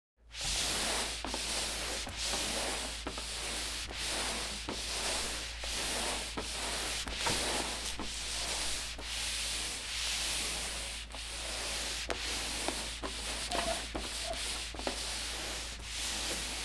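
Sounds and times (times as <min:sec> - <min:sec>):
mop moving back and forth on floor: 0:00.3 - 0:16.6.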